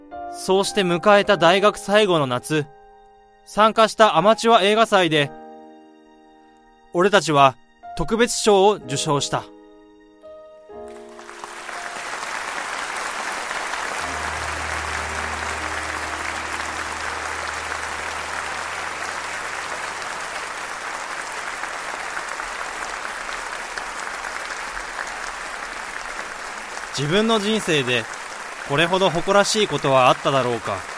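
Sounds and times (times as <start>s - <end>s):
speech: 0.3s - 2.8s, 3.4s - 5.4s, 6.9s - 9.6s, 27.0s - 30.9s
loud sustained applause from a large audience: 10.9s - 30.9s.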